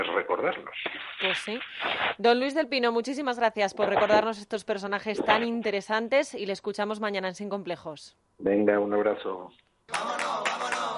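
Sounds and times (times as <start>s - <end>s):
radio show theme tune: 0.0s - 2.2s
speech: 0.0s - 10.8s.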